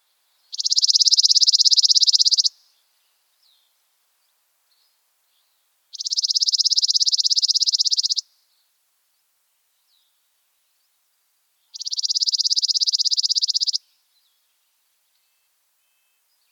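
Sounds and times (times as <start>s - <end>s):
chipping sparrow trill: 0.0s - 3.8s, 4.8s - 8.3s, 11.7s - 16.4s.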